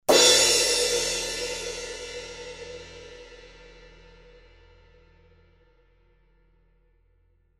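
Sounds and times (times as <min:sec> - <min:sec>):
crash cymbal: 0:00.1 - 0:05.2.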